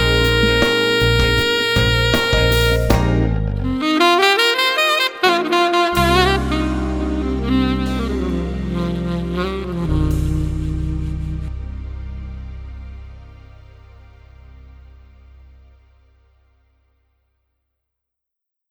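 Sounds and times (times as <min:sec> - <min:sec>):
custom alto saxophone: 0:00.0 - 0:12.2.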